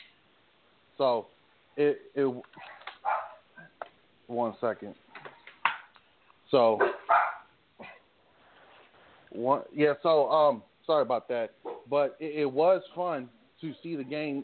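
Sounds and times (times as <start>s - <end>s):
speech: 1.0s - 2.7s, 4.3s - 5.0s, 6.5s - 7.2s, 9.4s - 14.4s
dog barking: 2.7s - 3.7s, 6.8s - 7.5s, 11.6s - 11.9s.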